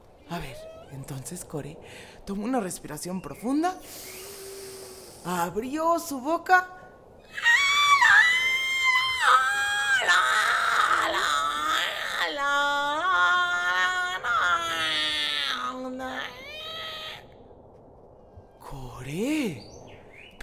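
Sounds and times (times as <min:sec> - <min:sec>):
human voice imitating an angry cat: 0:00.3 - 0:01.3, 0:07.3 - 0:17.3
speech: 0:00.3 - 0:04.3, 0:05.2 - 0:06.7.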